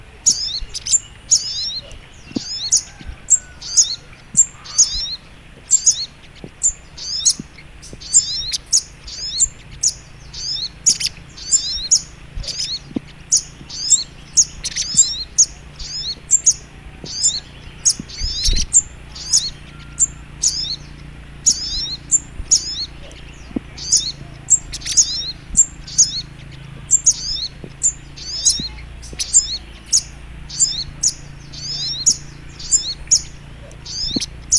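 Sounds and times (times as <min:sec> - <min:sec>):
Little Spiderhunter twittering: 0:00.0 - 0:34.5.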